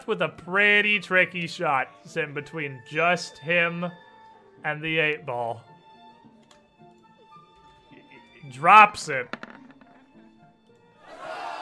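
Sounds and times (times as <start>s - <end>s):
speech: 0.0s - 5.7s, 8.4s - 9.4s
friends cheering: 11.0s - 11.6s.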